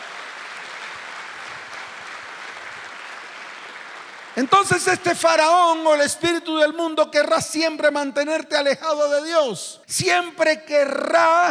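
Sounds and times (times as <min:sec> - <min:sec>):
audience applauding: 0:00.0 - 0:05.7
speech: 0:04.4 - 0:11.4.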